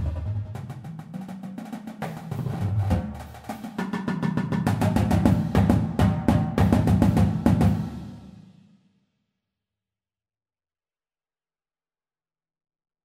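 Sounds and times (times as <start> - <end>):
drumline playing at auditions: 0.0 - 8.4.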